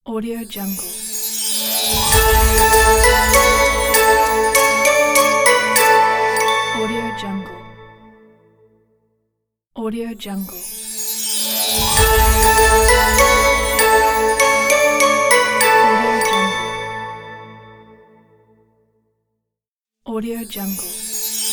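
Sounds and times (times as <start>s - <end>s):
Christmas logo opener: 1.0s - 8.1s, 10.8s - 18.1s, 20.9s - 21.5s.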